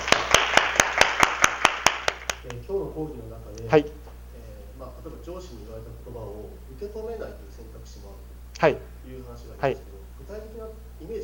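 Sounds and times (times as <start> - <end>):
audience clapping: 0.0 - 2.6
speech: 2.5 - 4.1, 4.8 - 11.2.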